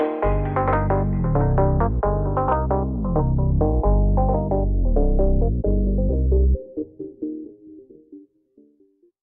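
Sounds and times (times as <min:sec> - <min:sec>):
bass playing funk: 0:00.0 - 0:06.6.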